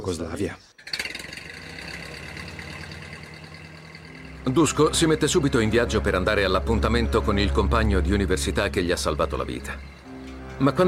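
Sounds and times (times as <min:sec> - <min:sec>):
speech: 0:00.0 - 0:00.7, 0:04.4 - 0:10.0, 0:10.6 - 0:10.8
car engine idling: 0:00.9 - 0:10.4.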